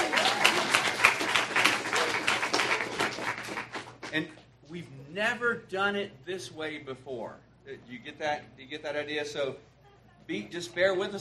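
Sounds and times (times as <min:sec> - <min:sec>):
audience clapping: 0:00.0 - 0:04.2
speech: 0:04.1 - 0:09.7, 0:10.3 - 0:11.1.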